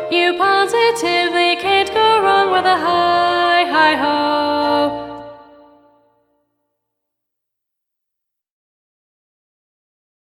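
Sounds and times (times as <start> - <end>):
alto voice singing: 0.0 - 6.0.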